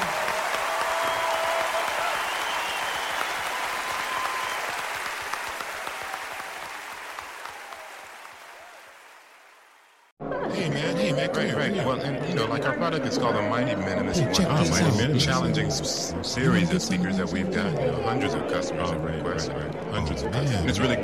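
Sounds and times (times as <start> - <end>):
audience applause: 0.0 - 10.1
speech: 11.4 - 21.0.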